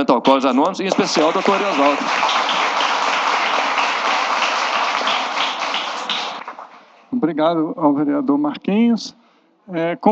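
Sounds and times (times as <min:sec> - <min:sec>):
speech: 0:00.0 - 0:02.6, 0:07.1 - 0:10.1
audience applause: 0:00.9 - 0:06.9.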